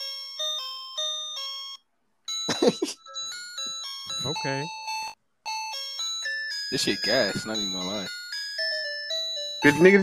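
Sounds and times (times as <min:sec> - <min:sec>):
toy ice cream truck piano playing ice cream truck jingle: 0:00.0 - 0:10.0
speech: 0:02.6 - 0:03.0, 0:04.2 - 0:04.8, 0:06.7 - 0:08.2, 0:09.6 - 0:10.0.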